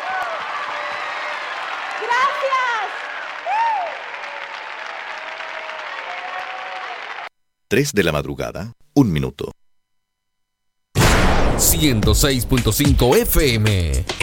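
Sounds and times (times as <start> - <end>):
audience applause: 0.0 - 7.3
speech: 7.7 - 9.6, 11.7 - 14.2.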